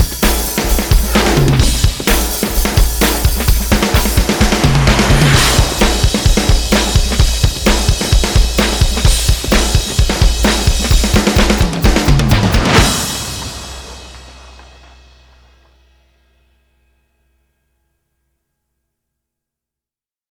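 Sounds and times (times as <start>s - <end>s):
drum effects: 0.0s - 15.6s.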